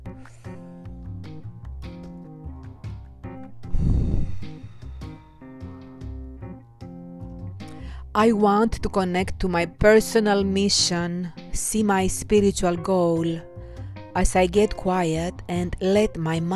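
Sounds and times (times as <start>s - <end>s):
slow deep breathing in and out: 0.1s - 1.0s, 3.6s - 6.0s, 7.6s - 8.1s, 13.5s - 14.1s
speech: 8.2s - 13.5s, 14.1s - 16.5s.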